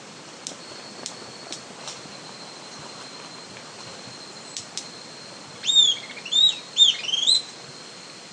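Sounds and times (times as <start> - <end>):
Southern antpipit Corythopis delalandi calling: 5.6 - 7.5.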